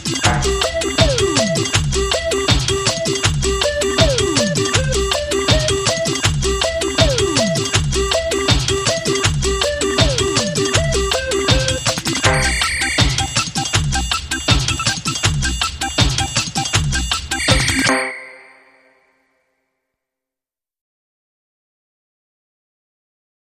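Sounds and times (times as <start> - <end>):
toy box underscore music: 0.2 - 16.4, 17.0 - 19.0.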